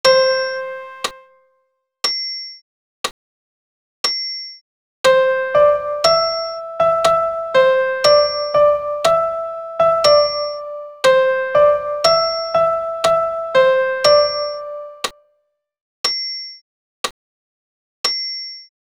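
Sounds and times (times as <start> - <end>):
soprano and piano: 0.0 - 1.3, 5.1 - 15.1.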